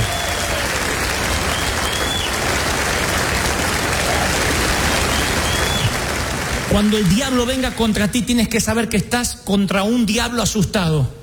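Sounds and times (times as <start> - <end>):
audience applauding: 0.0 - 8.2
speech: 6.8 - 11.2.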